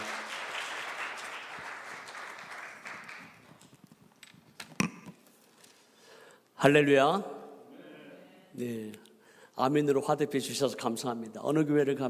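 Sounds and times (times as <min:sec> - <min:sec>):
audience applause: 0:00.0 - 0:03.6
speech: 0:06.6 - 0:07.3, 0:08.6 - 0:09.0, 0:09.6 - 0:12.0.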